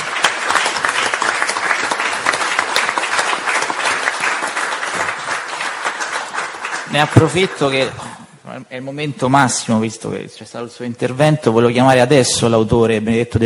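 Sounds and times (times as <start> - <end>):
audience applause: 0.0 - 8.1
speech: 6.9 - 13.4.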